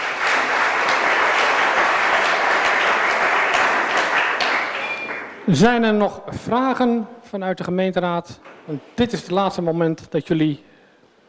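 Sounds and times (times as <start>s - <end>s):
audience applause: 0.0s - 5.4s
speech: 5.5s - 10.7s.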